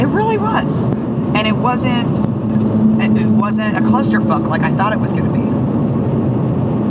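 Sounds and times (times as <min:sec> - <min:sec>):
speech: 0:00.2 - 0:05.6
heavy truck passing on the road: 0:02.1 - 0:06.7.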